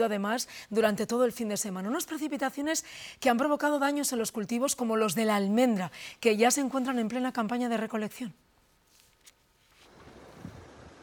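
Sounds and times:
speech: 0:00.0 - 0:08.5
floodwater rushing across farm fields in Valdealgorfa, Teruel, after storms: 0:09.9 - 0:11.0.

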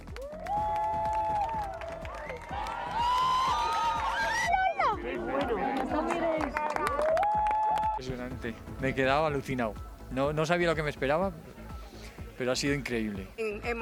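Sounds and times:
crowd applauding the solar eclipse: 0:00.0 - 0:08.0
speech: 0:08.4 - 0:11.5, 0:12.4 - 0:13.7.

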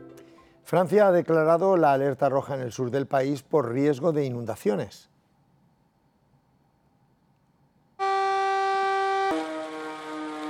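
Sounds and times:
speech: 0:00.7 - 0:05.1
warning sirens alerting the population of Cuisac: 0:08.0 - 0:10.4.

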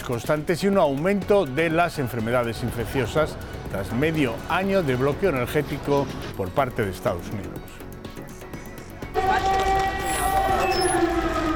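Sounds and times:
speech: 0:00.1 - 0:07.8
air raid siren wailing: 0:09.2 - 0:11.5.

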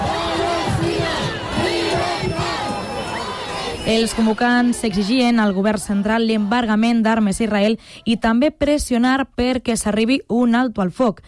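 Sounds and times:
large crowd at a protest march chanting in unison: 0:00.0 - 0:07.7
speech: 0:03.9 - 0:11.2.

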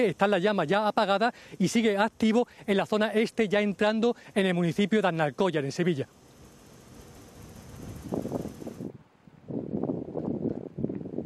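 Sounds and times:
speech: 0:00.0 - 0:06.2
gusty wind blowing during a wildfire in Niebla: 0:06.4 - 0:11.2.

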